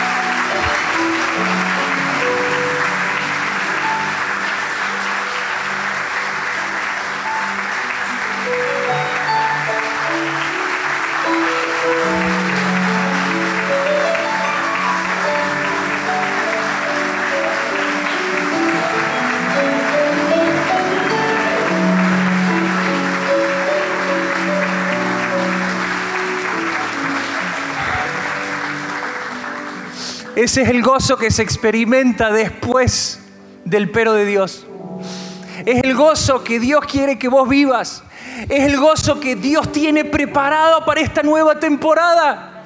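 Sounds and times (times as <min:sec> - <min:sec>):
audience applauding: 0:00.0 - 0:31.6
speech: 0:30.4 - 0:42.5.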